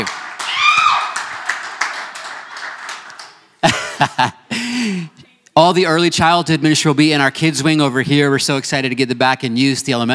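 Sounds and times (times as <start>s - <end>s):
crowd clapping: 0.0s - 3.9s
speech: 4.0s - 10.1s.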